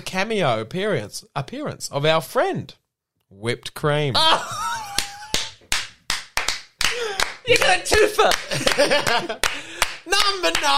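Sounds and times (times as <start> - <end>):
speech: 0.1 - 4.7, 7.5 - 10.7
laughter: 4.2 - 5.5, 7.9 - 9.9
hand claps: 4.9 - 10.7.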